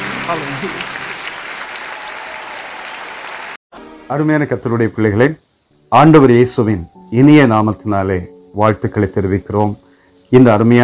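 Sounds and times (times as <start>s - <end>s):
congregation clapping hands during a Tamil Christian worship service: 0.0s - 3.6s
speech: 0.3s - 1.0s, 4.1s - 10.8s.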